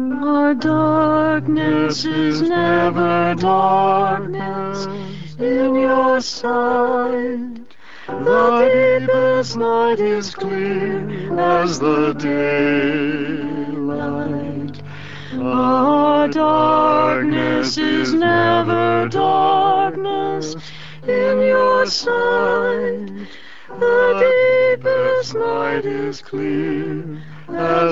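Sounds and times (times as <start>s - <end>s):
Taizé chant: 0.2s - 27.9s.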